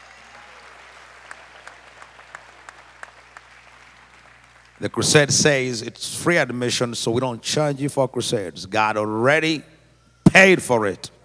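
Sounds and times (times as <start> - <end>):
crowd applauding: 0.0 - 5.2
speech: 4.8 - 9.7, 10.4 - 11.1.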